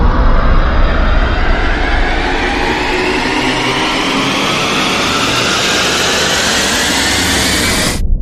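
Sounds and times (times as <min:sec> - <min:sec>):
short teleport rise effect: 0:00.2 - 0:08.0.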